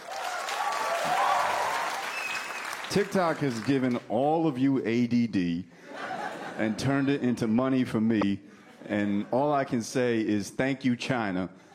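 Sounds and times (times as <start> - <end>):
audience clapping: 0.0 - 4.1
speech: 2.9 - 5.9, 6.6 - 11.7
laughter: 5.8 - 7.6, 8.6 - 9.9.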